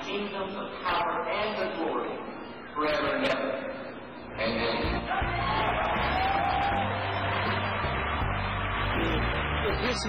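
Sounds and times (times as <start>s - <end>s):
speech: 0.1s - 3.8s, 9.7s - 10.0s
crowd of children cheering with whoops: 5.1s - 9.8s
children applauding steadily: 5.2s - 10.0s.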